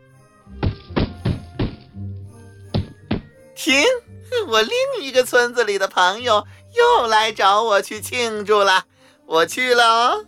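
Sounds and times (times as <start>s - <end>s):
heavy tail thumping on a wooden floor: 0.6s - 2.0s, 2.7s - 3.4s
speech: 3.6s - 10.2s.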